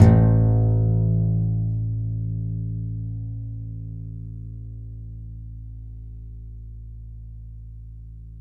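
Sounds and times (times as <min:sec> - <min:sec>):
contrabass balalaika plucked: 0:00.0 - 0:02.6.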